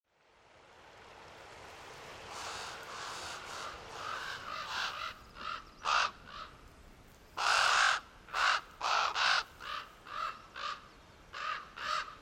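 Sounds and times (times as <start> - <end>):
raven cawing: 2.3 - 6.6, 7.4 - 12.1.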